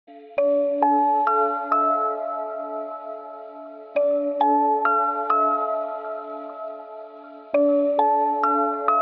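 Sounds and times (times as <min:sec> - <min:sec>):
music: 0:00.1 - 0:09.0.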